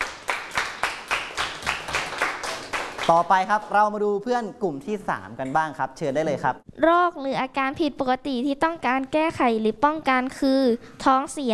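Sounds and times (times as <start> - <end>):
school class clapping for a classmate: 0.0 - 3.6
speech: 3.1 - 11.5.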